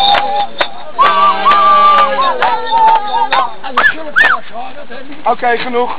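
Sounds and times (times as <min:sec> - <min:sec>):
whistle: 0:00.0 - 0:04.4.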